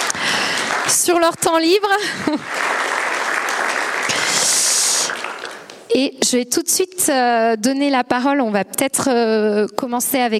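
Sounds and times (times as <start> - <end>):
audience applause: 0.0 - 5.8
speech: 1.0 - 2.8, 6.0 - 10.3
laughter: 2.0 - 2.6.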